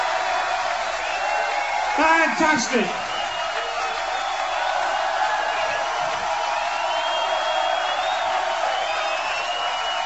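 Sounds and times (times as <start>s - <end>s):
audience cheering: 0.0s - 10.0s
speech: 2.0s - 3.1s.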